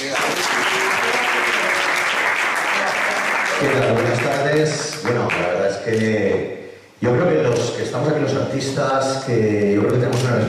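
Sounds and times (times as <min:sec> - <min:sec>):
audience applause: 0:00.0 - 0:05.4
speech: 0:03.6 - 0:10.4.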